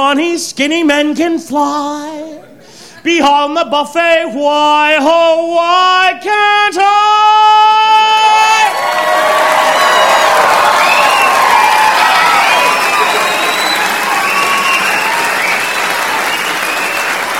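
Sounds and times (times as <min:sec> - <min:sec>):
speech: 0:00.0 - 0:02.4, 0:03.0 - 0:07.5
audience applause: 0:08.6 - 0:17.3.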